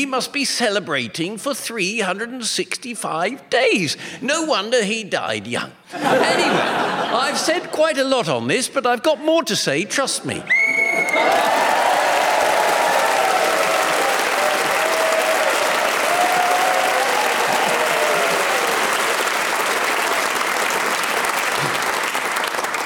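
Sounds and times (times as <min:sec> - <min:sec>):
speech: 0:00.0 - 0:11.6
laughter: 0:05.9 - 0:08.0
people cheering and whooping: 0:10.5 - 0:22.8
auditorium audience applauding: 0:10.6 - 0:22.8.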